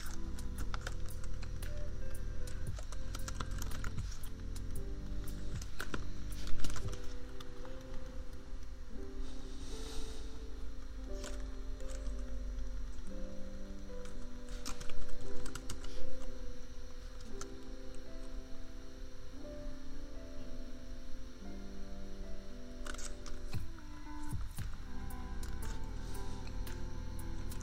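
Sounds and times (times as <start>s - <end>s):
keyboard typing: 0.0s - 8.4s, 11.0s - 16.4s, 22.8s - 27.6s
laptop fan hum: 0.0s - 27.6s
lofi beat with mellow chords: 0.0s - 27.6s.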